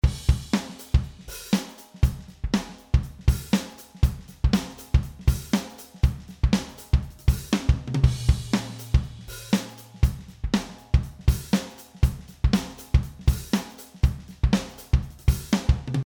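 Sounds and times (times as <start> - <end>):
dry drums: 0.0 - 16.0.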